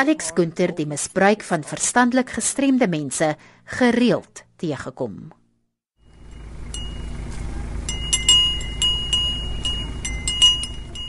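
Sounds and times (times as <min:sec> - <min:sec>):
speech: 0:00.0 - 0:05.4
bells tinkling on goats' necks: 0:06.1 - 0:11.0.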